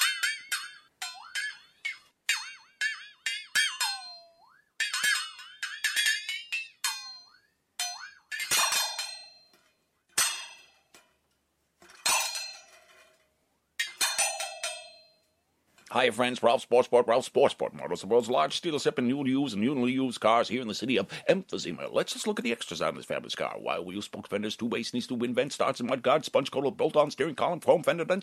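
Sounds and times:
wooden beaters tapping a bent metal strip: 0.0 - 15.2
speech: 15.9 - 28.2.

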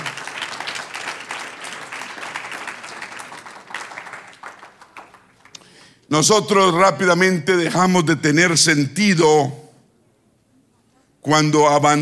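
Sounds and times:
audience applause: 0.0 - 5.9
speech: 6.1 - 9.6, 11.3 - 11.9.

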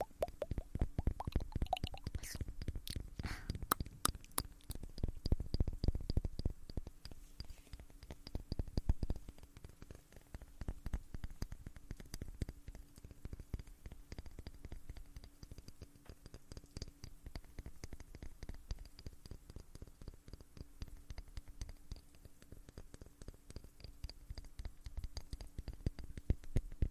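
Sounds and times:
ear eating mouth sounds: 0.0 - 9.1
faint low hum: 0.0 - 26.8.

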